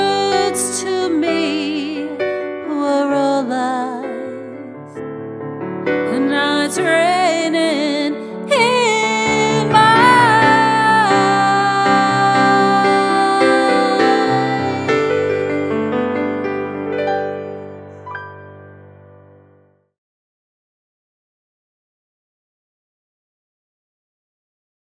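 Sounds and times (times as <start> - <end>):
piano music: 0.0 - 19.8.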